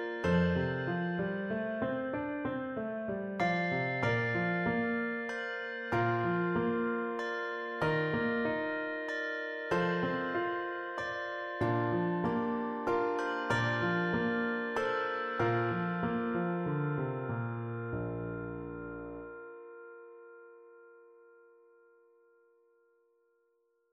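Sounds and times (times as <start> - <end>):
piano accompaniment: 0.0 - 21.5
two-octave handbells: 3.4 - 16.4.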